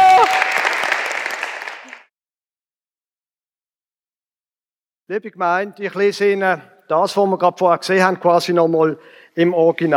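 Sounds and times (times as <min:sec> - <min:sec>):
applause for child actors: 0:00.0 - 0:02.1
speech: 0:05.1 - 0:09.9.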